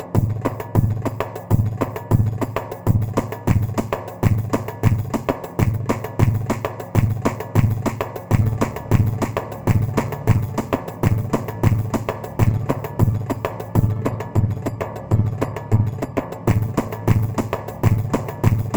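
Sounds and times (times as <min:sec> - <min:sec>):
Korg PA500 keyboard rhythm pattern: 0:00.2 - 0:18.7.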